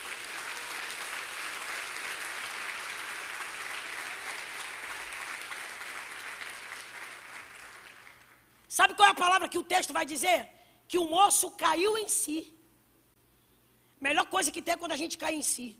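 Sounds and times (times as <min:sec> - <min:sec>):
audience applauding: 0:00.0 - 0:08.4
speech: 0:08.8 - 0:12.6, 0:14.0 - 0:15.7.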